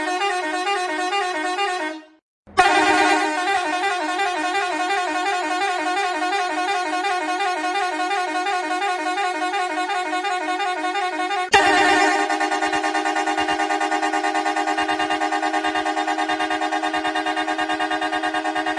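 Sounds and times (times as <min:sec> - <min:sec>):
horn tooting: 0:00.0 - 0:18.7.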